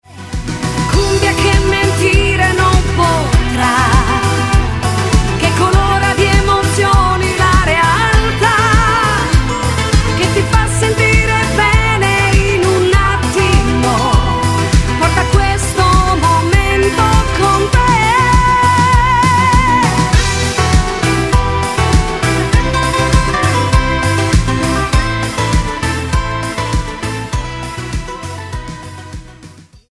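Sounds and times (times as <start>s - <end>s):
cumbia music: 0.0s - 29.9s.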